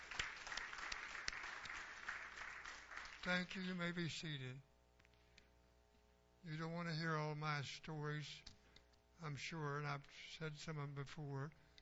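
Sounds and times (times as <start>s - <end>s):
audience applause: 0.0s - 3.6s
speech: 3.2s - 4.7s, 6.4s - 8.5s, 9.2s - 11.6s.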